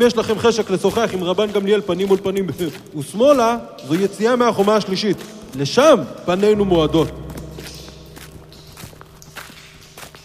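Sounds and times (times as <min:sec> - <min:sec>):
speech: 0:00.0 - 0:07.2
soft footsteps walking through a tunnel: 0:00.0 - 0:10.2
low hum: 0:06.4 - 0:10.2.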